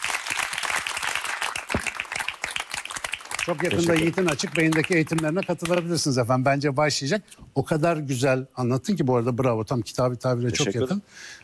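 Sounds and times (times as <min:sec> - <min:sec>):
group applause: 0:00.0 - 0:06.0
speech: 0:03.4 - 0:11.4.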